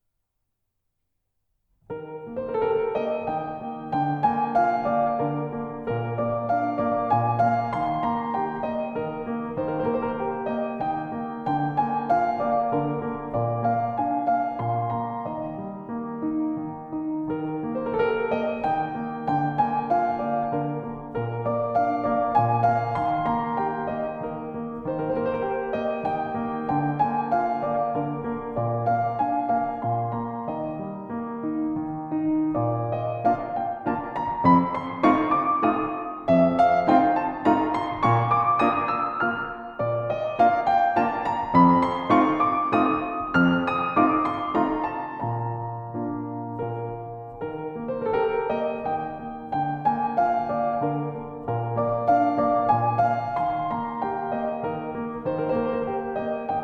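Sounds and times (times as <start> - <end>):
piano waltz: 1.9 - 56.6.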